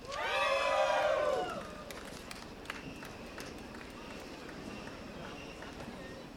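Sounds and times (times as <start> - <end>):
festival crowd cheering: 0.0 - 6.3
scattered claps: 1.6 - 6.1.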